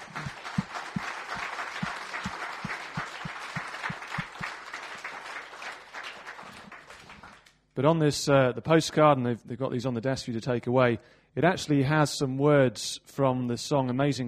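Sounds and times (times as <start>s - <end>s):
audience round of applause: 0.0s - 7.5s
speech: 7.8s - 14.2s.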